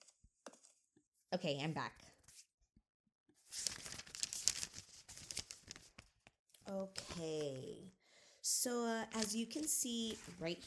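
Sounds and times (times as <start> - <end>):
speech: 1.3 - 2.1, 6.7 - 10.6
paper report cards rustling as handled: 3.4 - 7.7, 9.1 - 10.6.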